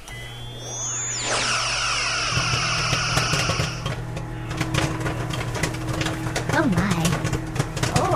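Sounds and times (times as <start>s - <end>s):
swooping sci-fi-like electronic tones: 0.0s - 4.6s
steady low microwave hum: 0.0s - 8.1s
popcorn popping in a microwave: 2.3s - 8.1s.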